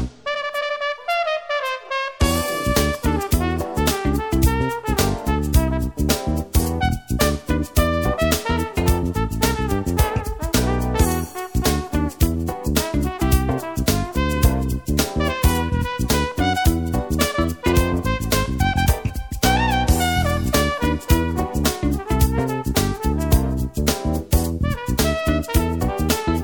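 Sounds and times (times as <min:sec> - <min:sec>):
trumpet solo: 0:00.2 - 0:26.4.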